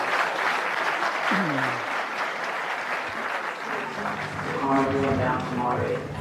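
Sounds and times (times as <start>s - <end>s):
crowd applause: 0.0s - 6.1s.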